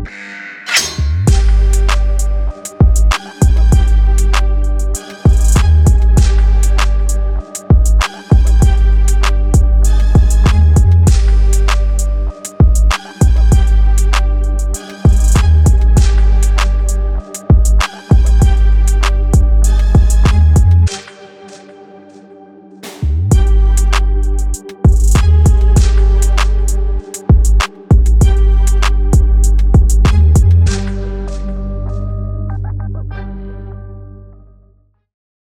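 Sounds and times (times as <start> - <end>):
music beat: 0.7 - 21.7, 22.9 - 33.2.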